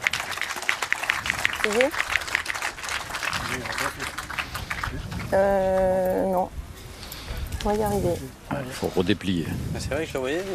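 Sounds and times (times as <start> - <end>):
audience applauding the referees: 0.0 - 5.9
speech: 1.6 - 2.2, 3.5 - 4.2, 5.3 - 6.6, 7.6 - 10.5.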